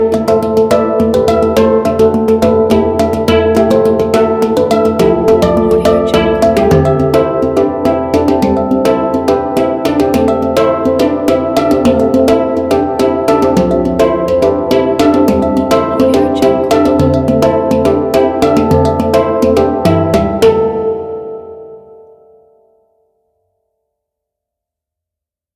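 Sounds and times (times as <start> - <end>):
hang drum song: 0.0 - 21.5.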